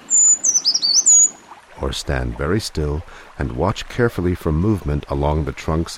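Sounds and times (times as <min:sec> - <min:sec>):
brown creeper song: 0:00.0 - 0:01.4
speech: 0:01.8 - 0:05.9.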